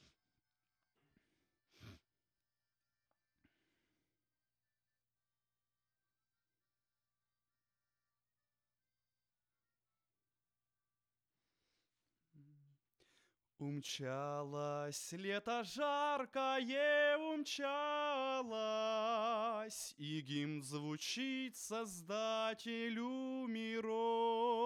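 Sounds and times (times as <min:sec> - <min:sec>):
vocals: 0:13.6 - 0:24.6.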